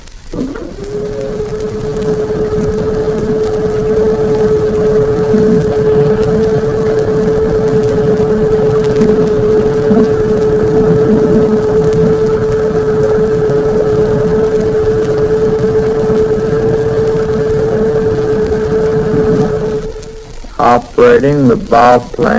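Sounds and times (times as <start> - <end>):
submarine periscope motor being raised: 0.3 - 20.4
speech: 21.2 - 22.3.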